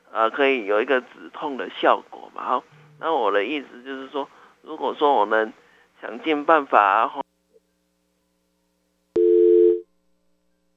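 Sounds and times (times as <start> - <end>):
speech: 0.2 - 7.2
telephone tone after call disconnected: 9.2 - 9.8.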